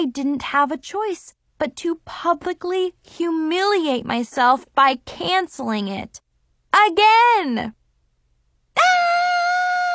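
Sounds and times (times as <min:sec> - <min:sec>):
speech: 0:00.0 - 0:07.8
person screaming: 0:08.8 - 0:09.9.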